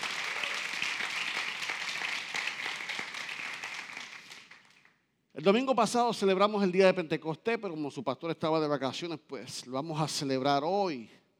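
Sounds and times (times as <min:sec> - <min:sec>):
applause: 0:00.0 - 0:05.0
speech: 0:05.4 - 0:11.2.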